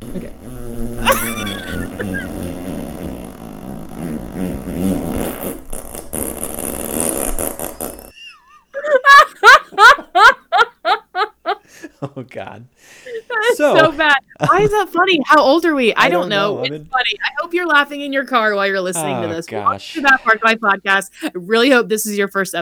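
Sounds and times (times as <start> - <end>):
fart sound effect from an app: 0.0 - 8.2
speech: 0.2 - 0.5, 12.2 - 22.6
laughter: 1.0 - 2.3, 8.1 - 14.9, 16.0 - 16.7, 19.0 - 20.7.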